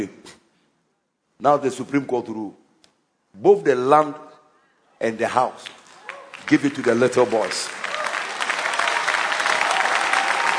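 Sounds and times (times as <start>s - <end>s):
speech: 1.4s - 2.6s, 3.4s - 4.3s, 5.0s - 5.8s, 6.5s - 7.8s
audience clapping and cheering: 5.5s - 10.5s.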